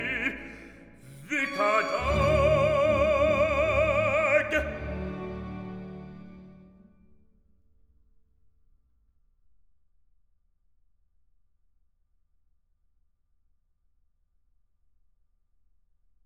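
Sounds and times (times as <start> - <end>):
voice with orchestra: 0.0 - 7.0.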